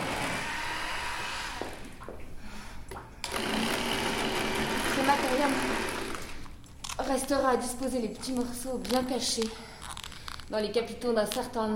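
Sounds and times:
vacuum cleaner running: 0.0 - 2.0, 3.3 - 6.4
speech: 7.1 - 9.7, 10.5 - 11.7.

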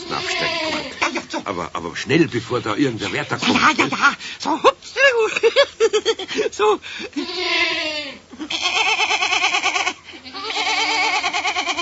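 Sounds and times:
small goat bleating with rapid vibrato: 0.0 - 1.2, 7.2 - 11.8
speech: 1.5 - 8.9.

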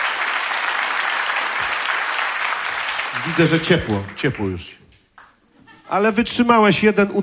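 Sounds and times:
audience applause: 0.0 - 4.7
speech: 3.2 - 4.8, 5.9 - 7.2.

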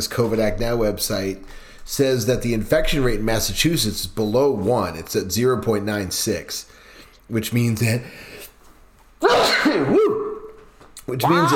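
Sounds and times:
speech: 0.0 - 8.4, 9.2 - 10.2, 11.1 - 11.5
father sneezing loudly: 9.2 - 10.5.

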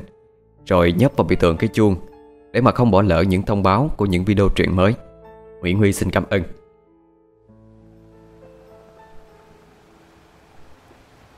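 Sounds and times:
speech: 0.7 - 5.0, 5.6 - 6.6
ocean waves washing ashore: 7.9 - 11.3.

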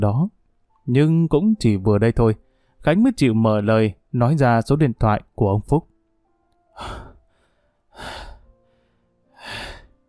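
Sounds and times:
speech: 0.0 - 5.9, 6.8 - 7.0
heavy pained breathing: 6.7 - 10.0.

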